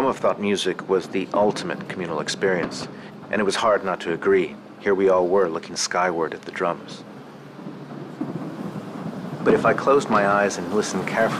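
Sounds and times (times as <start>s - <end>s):
fireworks booming over a city: 0.0s - 11.3s
speech: 0.1s - 7.1s, 9.4s - 11.3s.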